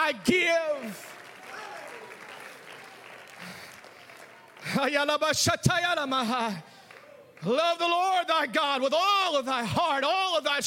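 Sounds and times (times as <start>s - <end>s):
audience clapping: 0.1s - 8.3s
speech: 4.8s - 6.7s, 7.4s - 10.6s.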